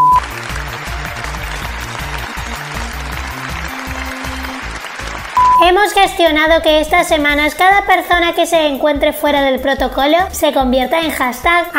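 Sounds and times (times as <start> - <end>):
crowd applause: 0.0 - 6.4
speech: 5.7 - 11.7.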